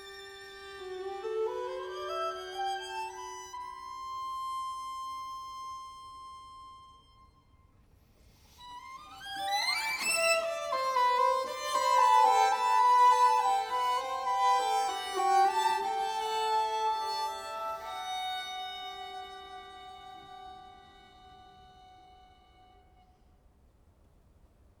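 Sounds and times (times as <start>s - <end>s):
string quartet: 0.0s - 4.6s, 8.6s - 23.0s.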